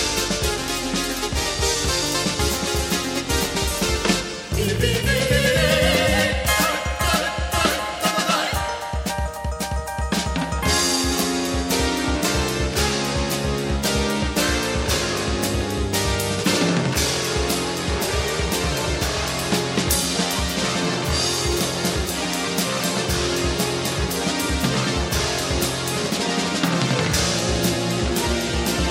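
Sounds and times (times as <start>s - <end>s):
music noise: 0.0s - 28.8s.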